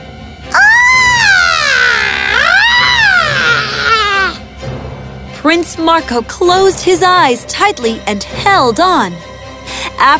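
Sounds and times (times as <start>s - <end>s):
loud piercing scream: 0.5s - 4.4s
speech: 5.5s - 9.3s, 10.0s - 10.1s.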